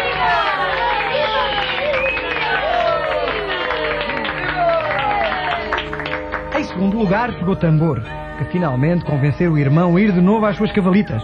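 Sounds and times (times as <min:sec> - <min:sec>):
many voices cheering and whooping: 0:00.0 - 0:06.0
crowd applauding: 0:00.0 - 0:07.4
speech: 0:07.0 - 0:11.2.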